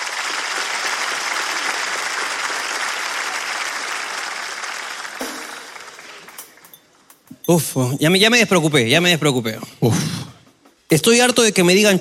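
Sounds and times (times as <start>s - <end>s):
audience applause: 0.0s - 6.7s
speech: 7.5s - 10.2s, 10.9s - 12.0s.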